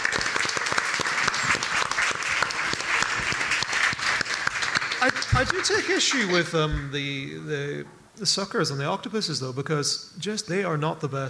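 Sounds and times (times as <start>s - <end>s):
round of applause: 0.0s - 6.7s
speech: 5.0s - 11.2s.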